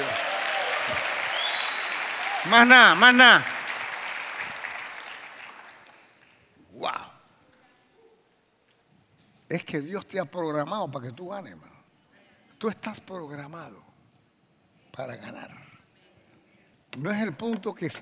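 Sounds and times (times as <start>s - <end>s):
audience applauding: 0.0s - 6.3s
speech: 2.4s - 3.5s, 9.5s - 11.8s, 12.6s - 13.9s, 15.0s - 15.7s, 16.9s - 18.0s.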